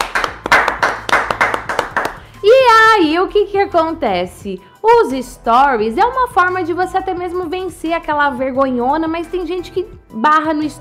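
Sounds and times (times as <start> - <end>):
hand claps: 0.0 - 2.3
speech: 3.1 - 10.7.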